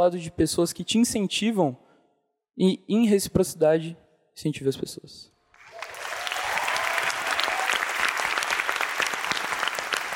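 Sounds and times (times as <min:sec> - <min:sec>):
speech: 0:00.0 - 0:01.9, 0:02.6 - 0:05.3
standing audience applause: 0:05.6 - 0:10.1.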